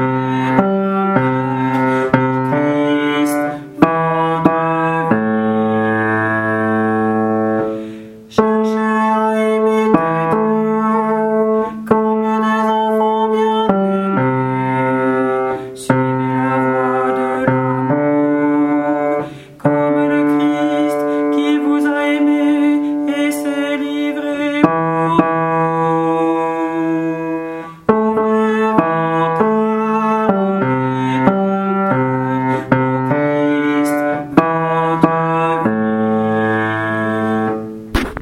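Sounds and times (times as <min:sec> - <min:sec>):
bass voice singing a hymn: 0:00.0 - 0:37.8.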